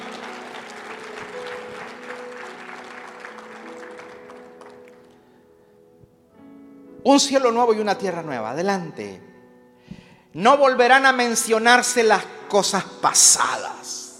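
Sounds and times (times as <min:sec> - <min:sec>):
audience applauding: 0:00.0 - 0:05.3
speech: 0:07.0 - 0:09.3, 0:10.4 - 0:14.0.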